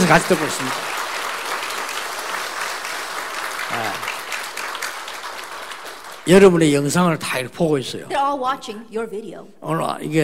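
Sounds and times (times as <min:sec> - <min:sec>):
audience applause: 0:00.0 - 0:07.0
speech: 0:00.1 - 0:01.0, 0:06.3 - 0:10.2.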